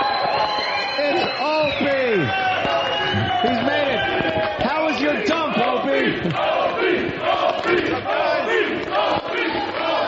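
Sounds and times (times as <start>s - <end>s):
large crowd cheering in ovation: 0.0s - 10.0s.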